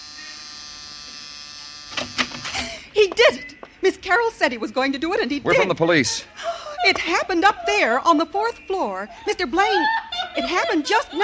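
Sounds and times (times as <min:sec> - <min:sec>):
door buzzer: 0:00.0 - 0:02.7
speech: 0:03.0 - 0:11.2
laughter: 0:05.9 - 0:11.2.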